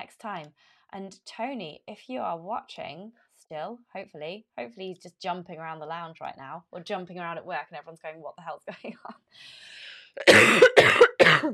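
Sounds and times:
speech: 0.2 - 11.5
coughing: 10.2 - 11.5.

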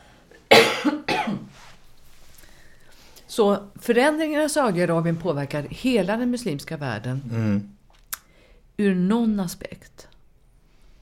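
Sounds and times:
person coughing: 0.5 - 1.5
speech: 3.4 - 7.8, 8.8 - 10.1.

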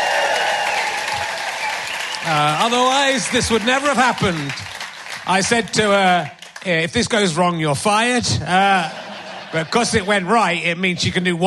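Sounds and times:
audience applause at a live show: 0.0 - 6.7
speech: 2.3 - 4.7, 5.3 - 11.4
laughter: 8.4 - 10.4.

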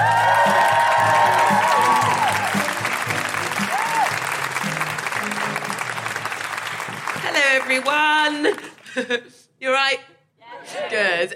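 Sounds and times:
comedy crowd whooping: 0.0 - 6.2
audience applause from a live comedy crowd at the Edinburgh Fringe: 0.0 - 8.9
speech: 7.8 - 10.1, 11.0 - 11.3.

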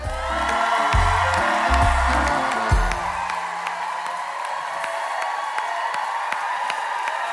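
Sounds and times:
low music: 0.0 - 3.3
cheering and whoops: 0.0 - 7.3
crowd applause: 0.0 - 7.3.

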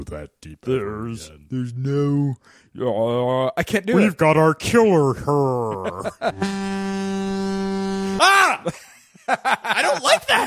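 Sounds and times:
speech: 0.0 - 7.1, 8.2 - 10.4
laughter: 5.5 - 6.5, 8.4 - 10.4
foghorn sound effect from a soundboard: 6.4 - 8.2.

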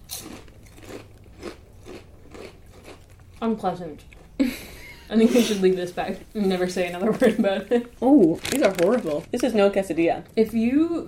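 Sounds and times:
crunching on flavored tortilla chips: 0.0 - 3.5, 7.8 - 9.4
low hum: 0.0 - 11.0
speech: 3.4 - 4.1, 5.1 - 11.0.

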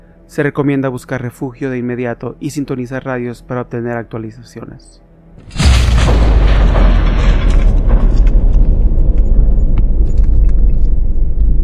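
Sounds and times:
speech: 0.3 - 7.0
crackling debris: 5.4 - 11.6
nuclear explosion blast: 5.4 - 11.6.

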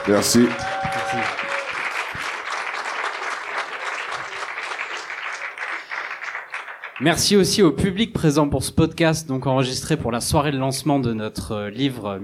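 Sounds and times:
speech: 0.0 - 1.4, 7.0 - 12.2
audience applause: 0.0 - 7.5.

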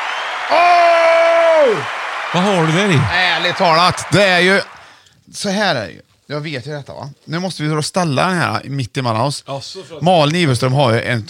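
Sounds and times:
applause: 0.0 - 5.0
speech: 0.5 - 0.9, 1.6 - 4.7, 5.3 - 11.2.

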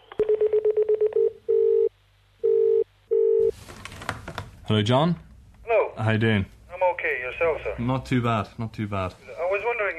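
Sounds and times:
sustained telephone tones: 0.0 - 3.5
speech: 4.7 - 5.3, 6.0 - 6.6, 7.4 - 9.9.

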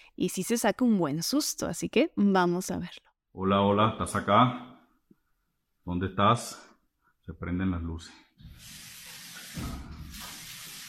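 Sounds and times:
speech: 0.2 - 4.7, 5.8 - 6.7, 7.3 - 8.7, 9.6 - 9.9
water tap running in a house: 8.4 - 10.8.

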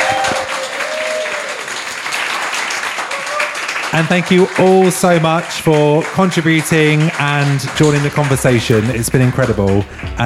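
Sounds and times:
faint whistles and cheers: 0.0 - 1.7, 3.1 - 3.7
crowd applauding: 0.0 - 10.2
speech: 4.0 - 10.2.

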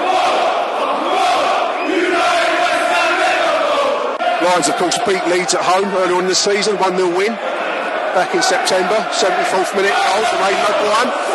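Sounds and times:
Millwall football supporters singing at a match against Leeds: 0.0 - 5.8, 7.4 - 11.3
speech: 4.5 - 7.6, 8.2 - 11.3.

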